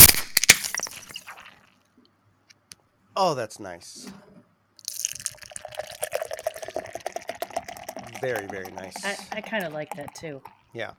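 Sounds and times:
bottle of Guinness being opened: 0:00.0 - 0:01.7, 0:04.8 - 0:10.6
speech: 0:03.2 - 0:04.3, 0:08.2 - 0:10.9.

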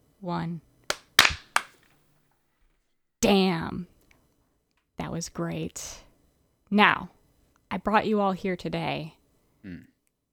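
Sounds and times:
speech: 0:00.2 - 0:00.7, 0:03.2 - 0:03.9, 0:05.1 - 0:06.1, 0:06.7 - 0:09.9
hand clap for audio sync: 0:00.9 - 0:01.8.

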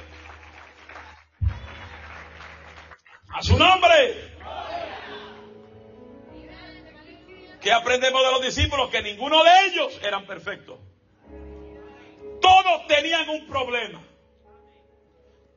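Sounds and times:
audience applause: 0:00.0 - 0:03.6
speech: 0:03.4 - 0:04.3, 0:07.6 - 0:10.9, 0:12.6 - 0:14.1.

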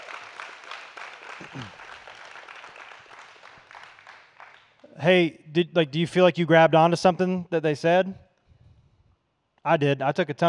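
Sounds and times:
audience applause: 0:00.0 - 0:04.9
speech: 0:01.4 - 0:01.8, 0:05.0 - 0:08.2, 0:09.6 - 0:10.4.

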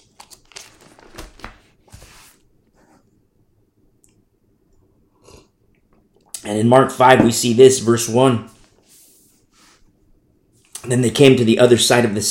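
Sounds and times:
thin Bible pages being flipped: 0:00.0 - 0:02.4
speech: 0:06.4 - 0:08.6, 0:10.9 - 0:12.2.

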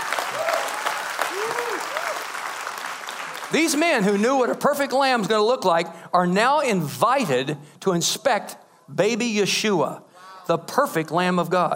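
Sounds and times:
audience applauding: 0:00.0 - 0:04.6
speech: 0:03.5 - 0:11.7.

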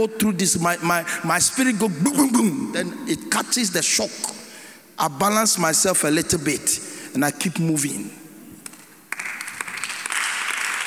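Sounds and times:
speech: 0:00.0 - 0:04.4, 0:05.0 - 0:08.2
audience clapping: 0:08.6 - 0:10.8.

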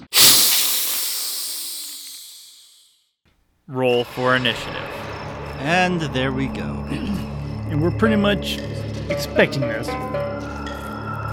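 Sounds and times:
monster's open maw hissing: 0:00.0 - 0:02.7
speech: 0:03.7 - 0:04.8, 0:05.6 - 0:10.5.

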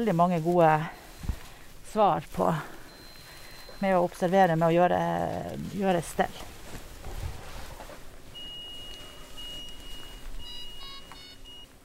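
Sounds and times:
speech: 0:00.0 - 0:01.0, 0:01.9 - 0:02.7, 0:03.8 - 0:06.5
patient monitor alarm beeping: 0:02.7 - 0:04.6, 0:08.3 - 0:11.8.

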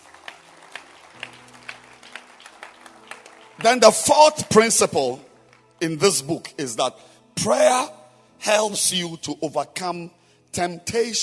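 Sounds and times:
audience clapping hands: 0:00.0 - 0:06.1
speech: 0:03.6 - 0:11.2.

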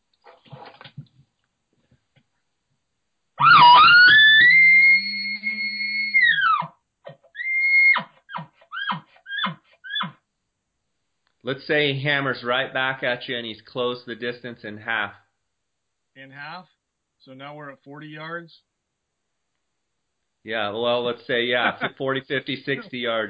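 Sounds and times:
imitated aggressive bull call: 0:03.4 - 0:10.2
speech: 0:11.5 - 0:15.2, 0:16.3 - 0:18.7, 0:20.4 - 0:23.2
laughter: 0:21.3 - 0:23.2.

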